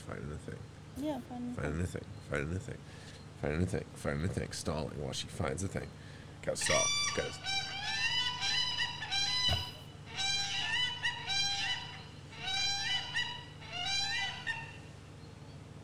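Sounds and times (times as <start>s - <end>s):
speech: 0.1s - 7.6s
whooping crane calling in honking bugle-like bursts: 6.6s - 15.4s.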